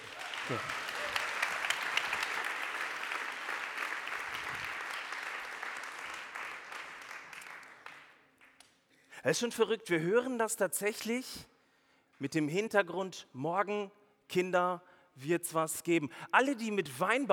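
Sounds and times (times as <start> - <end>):
audience applause: 0.0 - 8.5
speech: 0.5 - 0.8, 9.2 - 11.5, 12.2 - 17.3.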